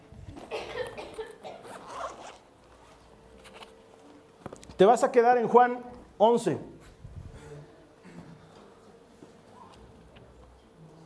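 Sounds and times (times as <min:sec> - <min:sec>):
zipper on the cover of a paper Bible opening: 0:00.3 - 0:03.7
speech: 0:04.8 - 0:06.7.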